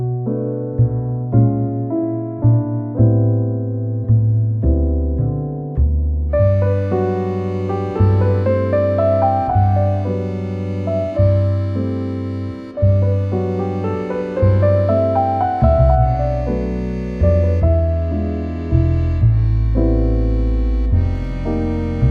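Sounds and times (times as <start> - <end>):
soft loving French lounge jazz: 0.0 - 22.0.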